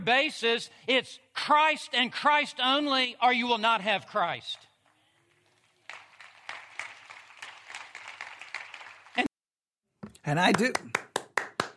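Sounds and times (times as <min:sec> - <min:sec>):
speech: 0:00.0 - 0:04.7, 0:10.3 - 0:11.0
sharp hand claps: 0:04.8 - 0:09.3, 0:10.0 - 0:11.7.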